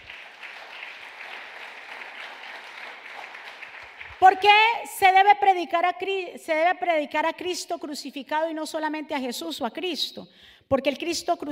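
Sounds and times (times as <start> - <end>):
applause: 0.0 - 4.7
speech: 4.2 - 11.5.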